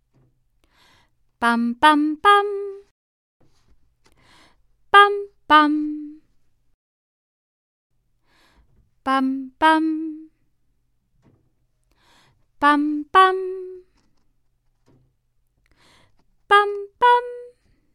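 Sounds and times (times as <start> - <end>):
person singing minor mode patterns on a neutral syllable: 1.4 - 2.9, 4.9 - 6.3, 9.0 - 10.4, 12.6 - 13.9, 16.5 - 17.8.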